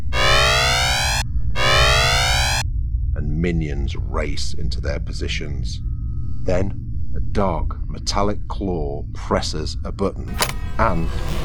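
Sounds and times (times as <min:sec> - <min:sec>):
alarm siren: 0:00.0 - 0:02.6, 0:10.3 - 0:11.4
speech: 0:03.4 - 0:11.4.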